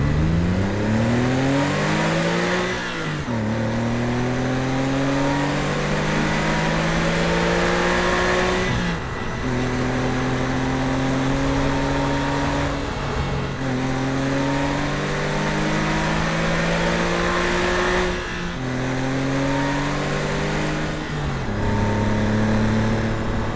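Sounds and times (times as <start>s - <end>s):
sports car driving: 0.0s - 23.5s.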